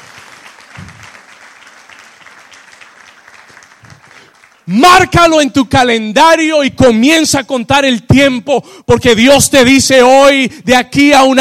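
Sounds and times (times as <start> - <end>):
audience applauding loudly: 0.0 - 5.2
speech: 4.7 - 11.4.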